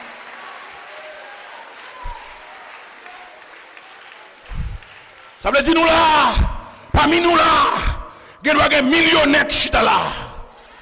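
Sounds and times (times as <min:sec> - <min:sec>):
audience clapping: 0:00.0 - 0:06.8
speech: 0:05.4 - 0:10.2.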